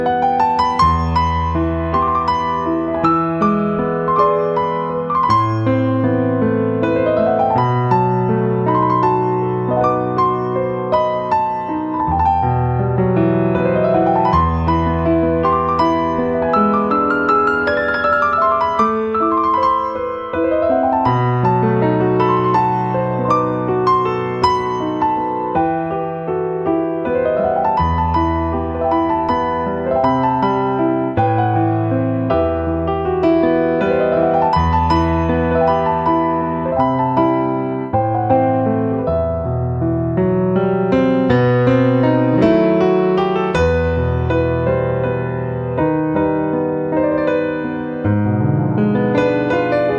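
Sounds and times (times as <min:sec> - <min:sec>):
piano: 0:00.0 - 0:49.9.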